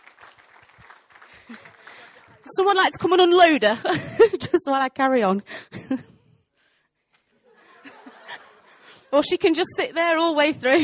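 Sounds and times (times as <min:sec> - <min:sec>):
audience applause: 0:00.0 - 0:02.5
speech: 0:02.5 - 0:06.0, 0:09.1 - 0:10.8
laughter: 0:07.2 - 0:09.1.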